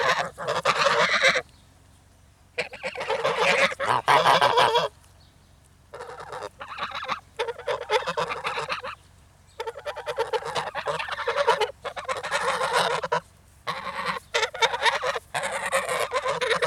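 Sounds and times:
angry geese hissing: 0.0 - 1.4, 2.5 - 5.0, 5.9 - 16.6.

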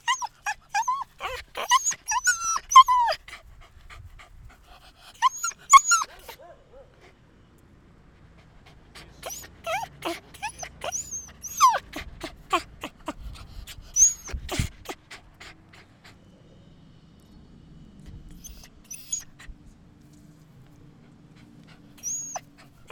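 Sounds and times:
dogs yelping: 0.0 - 3.4, 5.2 - 6.8, 9.0 - 15.6, 18.4 - 19.4, 21.9 - 22.9.

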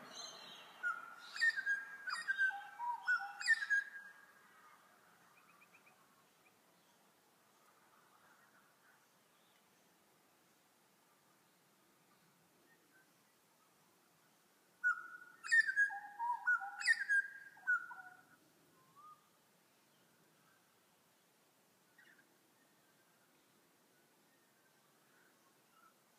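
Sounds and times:
bird chirps and whistles: 0.8 - 4.0, 14.8 - 18.1.

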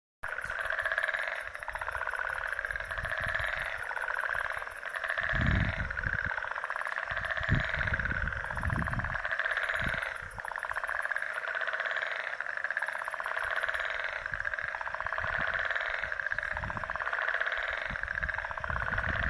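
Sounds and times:
frog chorus in Mauritius: 0.2 - 19.2.

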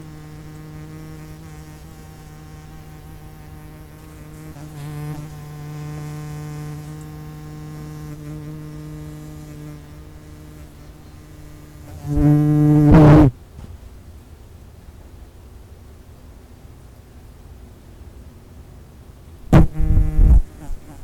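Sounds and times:
hoverfly wing buzz: 0.0 - 13.4, 19.5 - 21.0.

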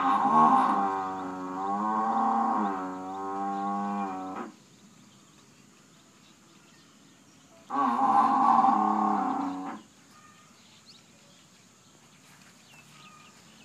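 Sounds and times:
buffalo mooing: 0.0 - 4.6, 7.7 - 9.9.

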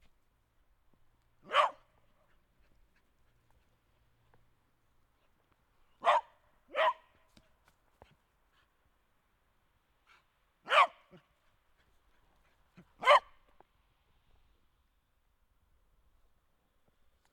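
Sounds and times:
dog barking: 1.4 - 1.9, 6.0 - 7.1, 10.7 - 11.2, 13.0 - 13.3.

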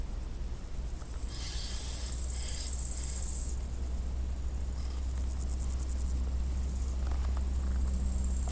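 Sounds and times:
crickets chirping: 0.0 - 8.5.

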